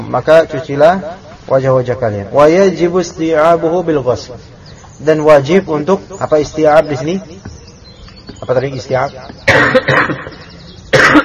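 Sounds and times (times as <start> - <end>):
speech: 0.1 - 7.6, 8.4 - 10.5
harsh raspy coughing: 9.4 - 11.2.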